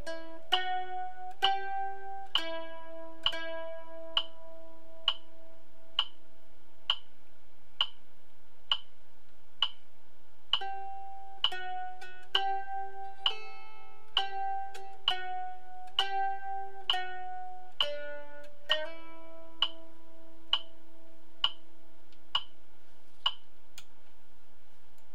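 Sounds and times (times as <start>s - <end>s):
mandolin playing a folk tune: 0.0s - 6.0s, 10.6s - 21.4s.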